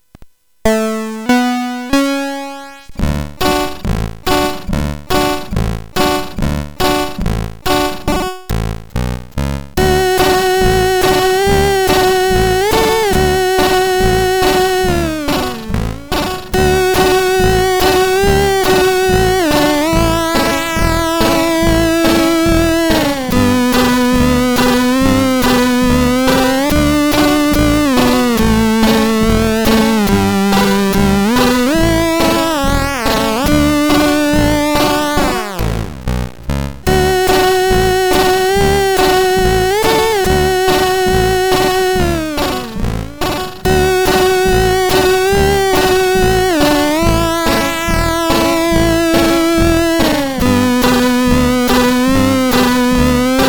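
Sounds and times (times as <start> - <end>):
chiptune music on a SID CSG 8580R5 chip: 0.7 - 53.4.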